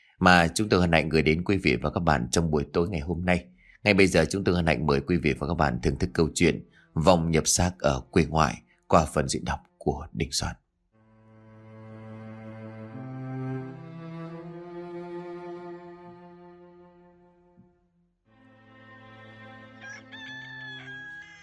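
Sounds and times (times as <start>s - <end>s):
speech: 0.2s - 10.6s
rooster crowing from the head of a village: 19.4s - 21.4s.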